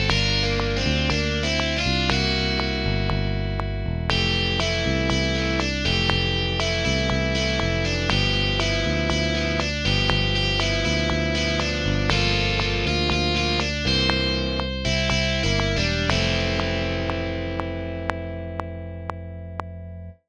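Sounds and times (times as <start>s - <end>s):
song without percussion: 0.0s - 20.2s.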